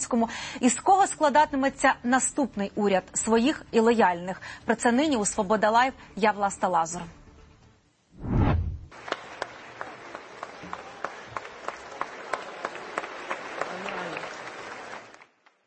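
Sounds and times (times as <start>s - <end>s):
speech: 0.0s - 7.2s
parliament deputies clapping rhythmically in standing ovation: 8.9s - 15.6s.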